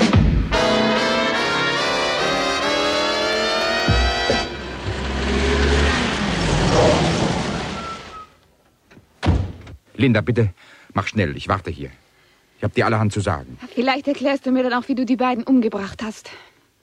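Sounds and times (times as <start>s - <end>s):
car engine starting and driving off: 0.6s - 8.3s
speech: 10.0s - 12.0s, 12.6s - 16.5s.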